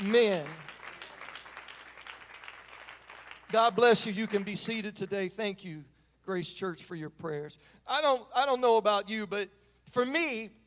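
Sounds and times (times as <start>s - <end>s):
audience clapping: 0.0s - 4.8s
speech: 0.1s - 0.6s, 3.5s - 10.6s.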